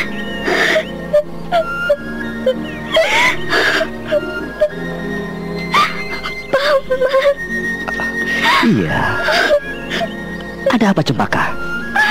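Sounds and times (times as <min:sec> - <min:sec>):
girl crying alone, acted by a performer: 0:00.4 - 0:04.8, 0:05.7 - 0:10.2
speech: 0:08.7 - 0:09.5, 0:10.8 - 0:11.6.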